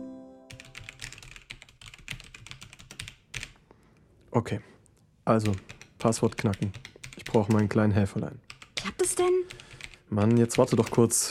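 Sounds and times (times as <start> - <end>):
rapid typing on a computer keyboard: 0.5 - 3.6, 5.4 - 7.8, 8.5 - 11.1
speech: 4.3 - 4.7, 5.3 - 8.5, 9.1 - 11.2.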